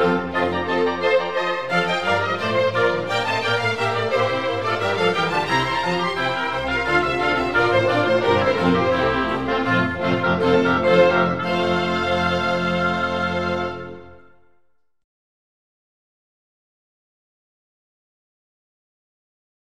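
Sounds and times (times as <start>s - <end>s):
classical concerto in F major: 0.0s - 14.6s.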